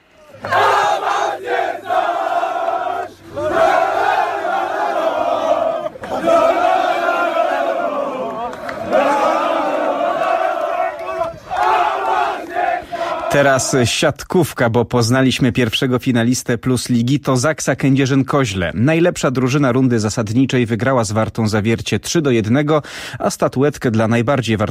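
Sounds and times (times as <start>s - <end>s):
football fans chanting, celebrating promotion: 0.2s - 13.8s
speech: 13.4s - 24.6s.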